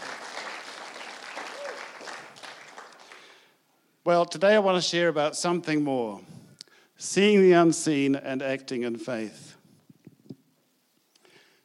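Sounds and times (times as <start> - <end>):
audience clapping: 0.0 - 3.5
speech: 4.0 - 6.4, 7.0 - 9.5.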